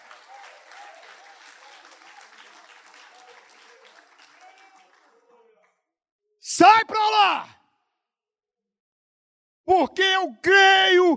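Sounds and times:
audience applause: 0.0 - 5.7
speech: 6.6 - 7.6, 9.7 - 11.1.

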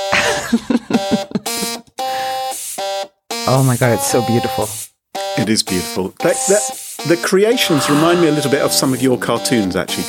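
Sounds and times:
laughter: 0.1 - 2.4
speech: 0.5 - 0.8, 3.5 - 10.0
rock riff played on buzzing electric toothbrushes: 1.6 - 2.9, 3.5 - 4.7, 6.3 - 10.0
steam iron hissing and sputtering: 2.1 - 2.9, 3.5 - 4.9, 6.3 - 9.3.

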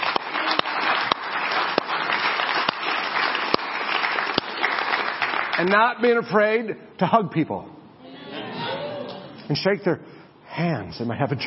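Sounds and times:
audience applause: 0.0 - 5.8
speech: 5.6 - 7.8, 9.5 - 11.4.

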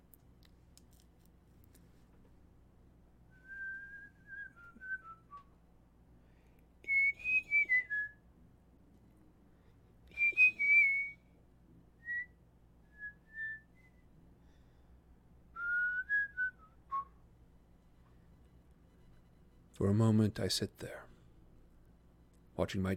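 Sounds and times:
faint low hum: 0.0 - 22.9
whistled four-note tune: 3.3 - 5.5, 6.8 - 8.2, 10.1 - 11.2, 15.6 - 17.2
speech: 19.8 - 21.1, 22.6 - 22.9.

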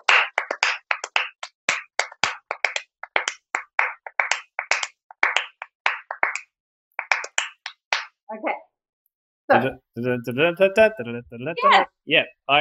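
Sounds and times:
hands clapping a song's rhythm: 0.0 - 8.2
speech: 8.3 - 8.6, 9.5 - 12.5.

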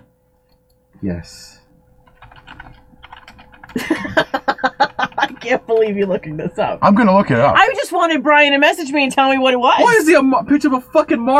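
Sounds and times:
speech: 1.0 - 1.6, 3.7 - 11.3
typing on a computer keyboard: 2.0 - 3.8, 4.9 - 6.0
laughter: 3.7 - 5.9.

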